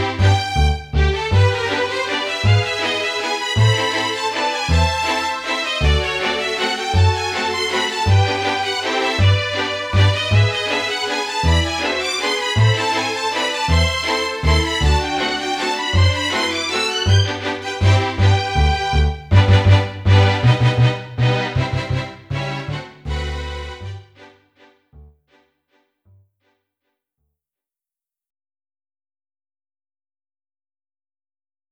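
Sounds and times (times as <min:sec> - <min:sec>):
dance waltz music: 0:00.0 - 0:25.1.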